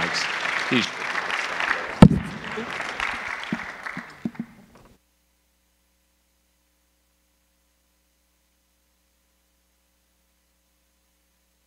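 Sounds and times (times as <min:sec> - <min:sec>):
audience applause: 0:00.0 - 0:04.8.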